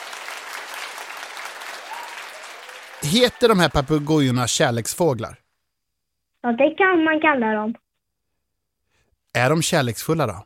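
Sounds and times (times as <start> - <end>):
crowd applause: 0.0 - 4.8
speech: 3.0 - 5.4, 6.4 - 7.8, 9.3 - 10.4.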